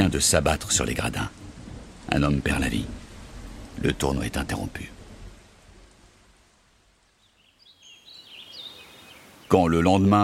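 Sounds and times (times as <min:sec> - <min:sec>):
speech: 0:00.0 - 0:01.5, 0:02.1 - 0:03.0, 0:03.8 - 0:05.0, 0:09.5 - 0:10.2
deep thunder rumbling: 0:00.0 - 0:07.1
steady rain hissing: 0:00.0 - 0:10.2
faint high bird chirps: 0:07.0 - 0:10.0.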